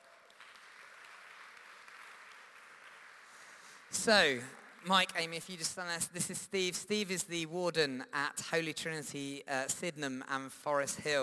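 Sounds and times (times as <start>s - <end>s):
audience applause: 0.0s - 4.9s
speech: 3.9s - 11.2s.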